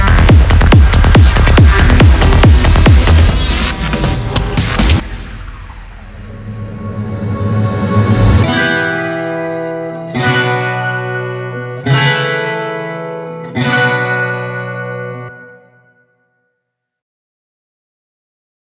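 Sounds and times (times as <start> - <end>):
club bass music: 0.0 - 13.0.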